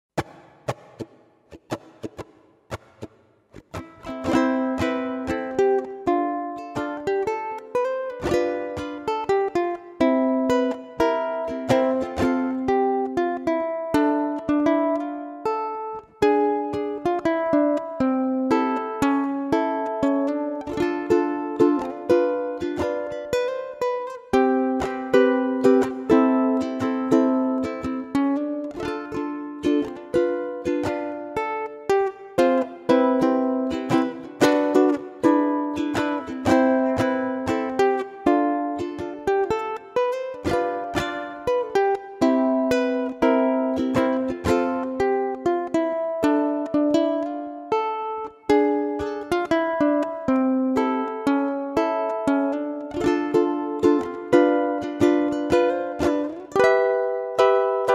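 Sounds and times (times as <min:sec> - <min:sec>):
ukulele: 0:00.2 - 0:57.9.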